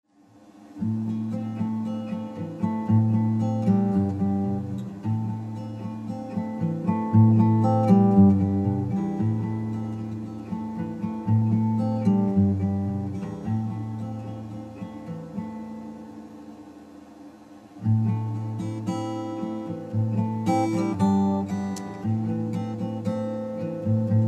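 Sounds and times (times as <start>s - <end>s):
raw guitar: 0.8s - 16.3s, 17.8s - 24.2s.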